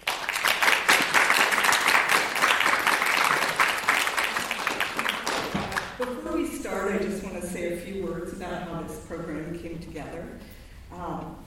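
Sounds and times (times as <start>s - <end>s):
audience applause welcoming a speaker at a library program: 0.0s - 6.0s
speech: 6.7s - 11.4s.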